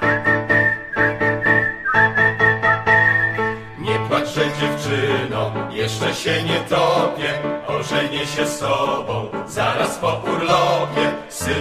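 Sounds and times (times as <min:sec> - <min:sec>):
whistled melody: 0:00.0 - 0:05.2
speech: 0:05.9 - 0:11.5.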